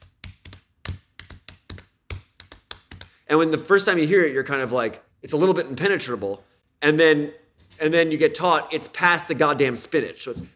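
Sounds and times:
hand taps beating out a four-against-three polyrhythm: 0:00.0 - 0:03.2
speech: 0:03.3 - 0:10.5.

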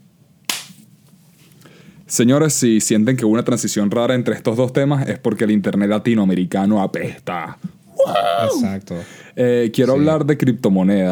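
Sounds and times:
single hand clap: 0:00.5 - 0:00.8
speech: 0:02.1 - 0:11.1.

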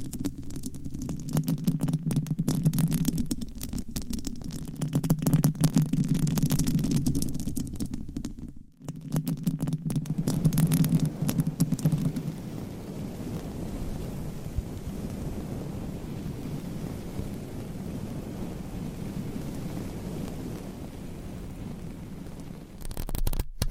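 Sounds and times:
scratching on a microphone with nails and covers: 0:00.0 - 0:20.8, 0:22.3 - 0:23.7.

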